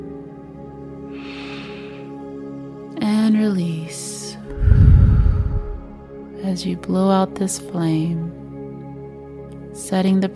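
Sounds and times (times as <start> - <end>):
deep breath in during guided meditation: 1.1 - 2.2, 4.5 - 6.0
speech: 3.3 - 4.0, 6.6 - 8.4, 9.9 - 10.3.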